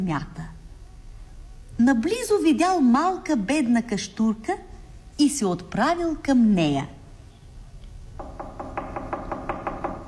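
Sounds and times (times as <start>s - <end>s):
speech: 0.0s - 0.5s, 1.8s - 7.0s
knocking on a door: 8.2s - 10.0s.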